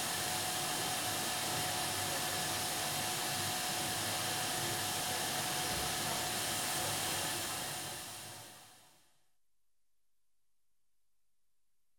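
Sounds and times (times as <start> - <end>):
hospital autoclave steriliser running: 0.0 - 8.5.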